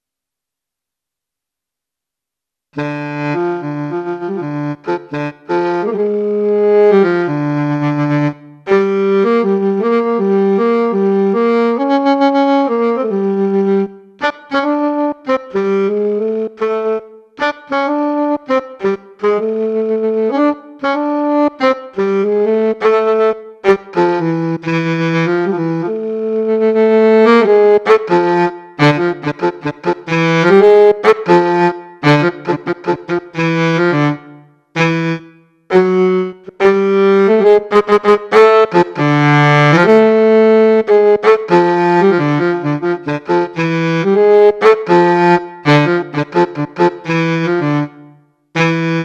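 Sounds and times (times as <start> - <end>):
saxophone: 2.8 - 49.0.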